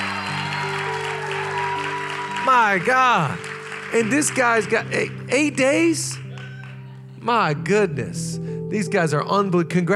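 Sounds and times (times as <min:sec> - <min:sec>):
audience clapping: 0:00.0 - 0:07.1
speech: 0:02.5 - 0:06.2, 0:07.2 - 0:09.9.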